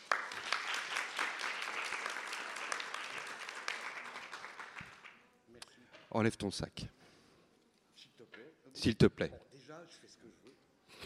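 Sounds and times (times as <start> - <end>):
room full of people applauding: 0.0 - 5.2
speech: 6.2 - 7.0, 8.8 - 10.2.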